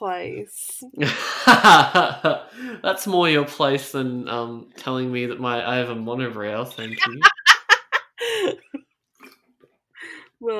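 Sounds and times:
speech: 0.0s - 7.4s
laughter: 1.0s - 2.8s, 6.7s - 8.8s
sipping water: 6.8s - 7.3s.

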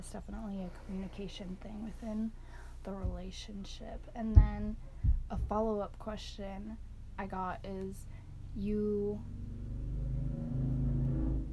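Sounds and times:
speech: 0.1s - 9.4s
motorcycle passing by: 8.3s - 11.5s.

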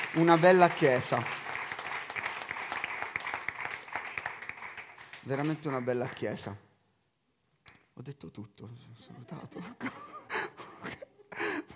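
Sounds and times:
audience applauding: 0.0s - 6.5s
speech: 0.1s - 1.4s, 5.3s - 6.7s, 8.0s - 10.2s
laughter: 9.1s - 11.7s.

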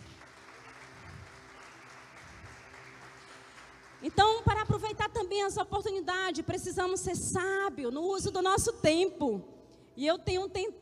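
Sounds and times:
audience applauding: 0.0s - 4.7s
speech: 4.0s - 10.8s.

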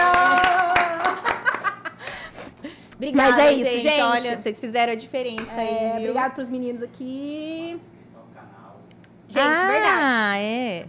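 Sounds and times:
round of hand clapping: 0.0s - 1.8s
laughter: 1.1s - 2.0s
speech: 3.0s - 7.9s, 9.3s - 10.8s.

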